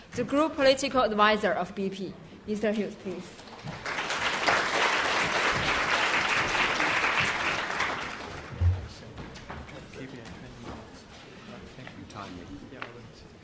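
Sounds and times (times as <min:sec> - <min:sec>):
speech: 0:00.2 - 0:03.8
audience applause welcoming a keynote speaker at a conference: 0:03.4 - 0:08.8.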